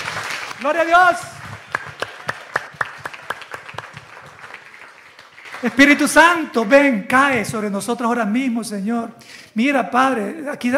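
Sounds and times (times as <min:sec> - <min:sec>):
applause: 0:00.0 - 0:06.8
speech: 0:00.2 - 0:01.4, 0:05.6 - 0:10.7.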